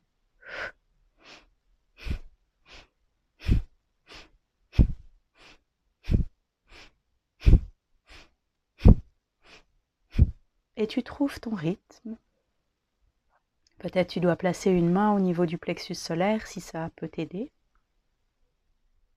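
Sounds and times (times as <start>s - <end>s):
belly breathing in and out during yoga practice: 0.4s - 10.5s
speech: 10.8s - 12.3s, 13.8s - 17.6s.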